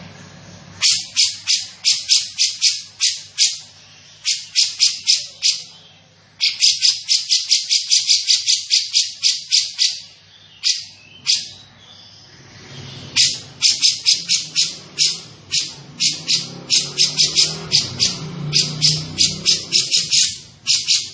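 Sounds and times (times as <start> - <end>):
grey-cheeked bulbul chattering: 0.8 - 11.8, 12.7 - 21.1.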